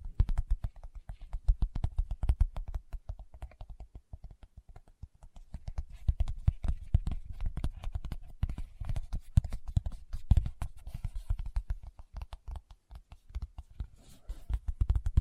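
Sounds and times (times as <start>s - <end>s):
fingertips tapping: 0.0s - 15.1s.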